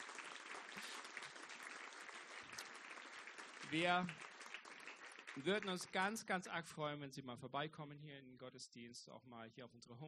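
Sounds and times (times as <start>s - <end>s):
audience applause: 0.0s - 6.0s
speech: 3.7s - 4.2s, 5.4s - 10.0s.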